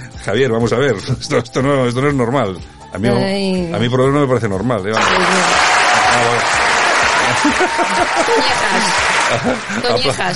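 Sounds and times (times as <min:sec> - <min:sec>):
speech: 0:00.2 - 0:06.6, 0:07.4 - 0:10.3
applause: 0:05.0 - 0:10.3
laughter: 0:06.6 - 0:10.3.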